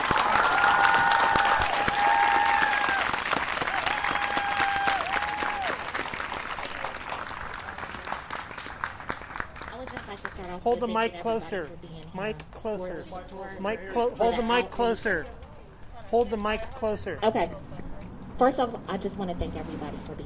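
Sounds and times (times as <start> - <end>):
audience applause and cheering honouring a family at a justice gathering: 0.0 - 9.7
speech: 10.7 - 15.4, 16.1 - 17.6, 18.4 - 20.2.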